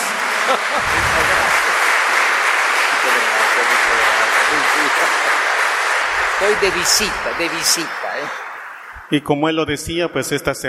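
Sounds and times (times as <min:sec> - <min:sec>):
laughter: 0:00.0 - 0:02.2, 0:02.8 - 0:08.6
audience applause: 0:00.0 - 0:09.1
speech: 0:00.5 - 0:01.4, 0:03.1 - 0:05.5, 0:06.2 - 0:08.4, 0:09.1 - 0:10.6.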